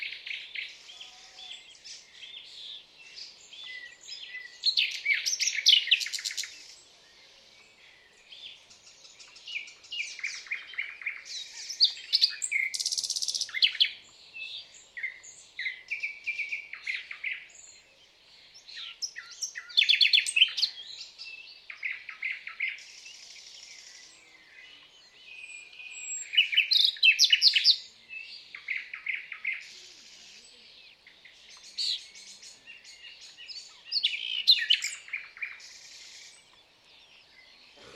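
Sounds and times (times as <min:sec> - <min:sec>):
Common nightingale song: 0:00.0 - 0:37.9.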